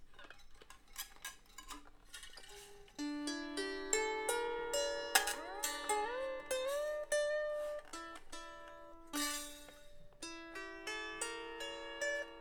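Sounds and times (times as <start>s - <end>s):
lyre: 3.0s - 12.3s.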